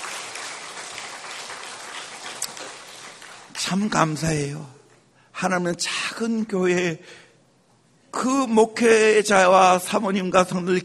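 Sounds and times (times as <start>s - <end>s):
applause: 0.0s - 4.2s
speech: 3.7s - 4.8s, 5.4s - 7.2s, 8.2s - 10.8s.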